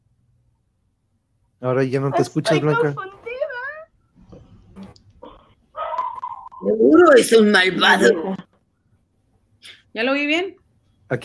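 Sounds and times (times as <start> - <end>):
speech: 1.6 - 3.1, 7.1 - 8.4, 10.0 - 11.2
dog barking in high-pitched yelping bursts: 5.8 - 6.3.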